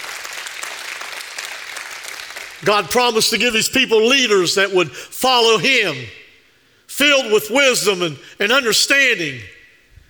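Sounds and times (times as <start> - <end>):
audience applause: 0.0 - 2.6
speech: 2.6 - 6.2, 7.0 - 9.6.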